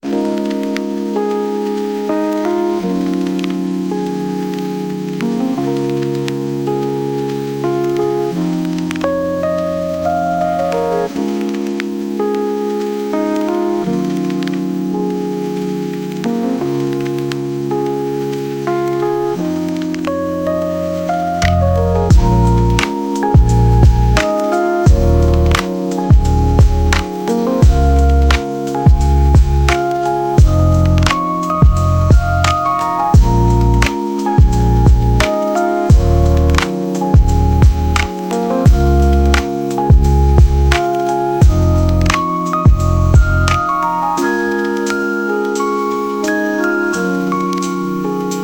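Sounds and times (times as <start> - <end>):
lofi chill hop: 0.0 - 48.4.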